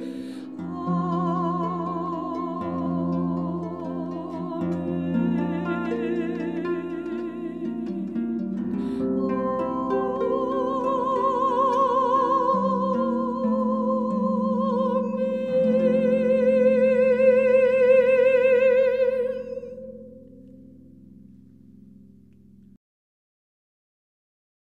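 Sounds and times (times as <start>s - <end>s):
voice: 0.0s - 19.8s
harp playing: 0.0s - 22.6s.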